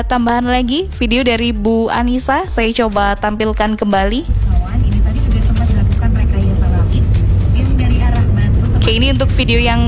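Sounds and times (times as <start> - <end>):
speech: 0.0 - 4.4, 8.8 - 9.8
dense road traffic: 4.3 - 9.8.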